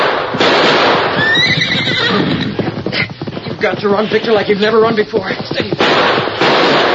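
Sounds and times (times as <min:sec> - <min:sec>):
broad rushing noise: 0:00.0 - 0:06.9
horse neighing: 0:01.2 - 0:03.4
speech: 0:03.6 - 0:06.2.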